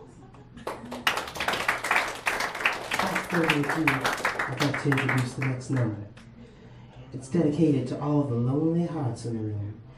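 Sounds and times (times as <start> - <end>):
crowd applause: 0.6 - 5.8
speech: 3.3 - 6.2, 7.1 - 9.8.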